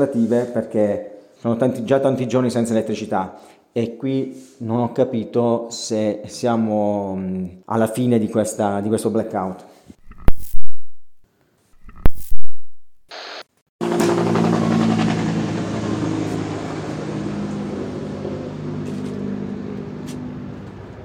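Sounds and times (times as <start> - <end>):
speech: 0.0 - 9.7
helicopter passing: 13.8 - 20.8.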